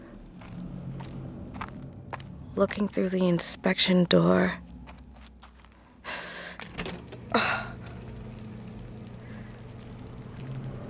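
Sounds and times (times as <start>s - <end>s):
footsteps walking: 0.4s - 2.9s, 4.7s - 5.9s
speech: 2.6s - 4.6s.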